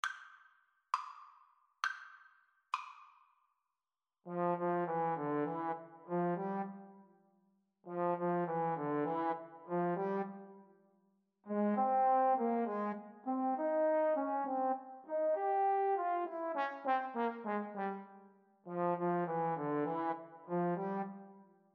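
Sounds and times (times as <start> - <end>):
trombone duet: 4.3 - 6.8, 7.9 - 10.4, 11.5 - 18.1, 18.7 - 21.2.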